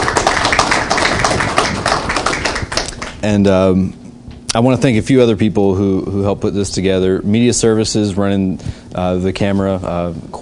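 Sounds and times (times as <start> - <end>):
crowd applause: 0.0 - 3.3
speech: 3.2 - 10.4.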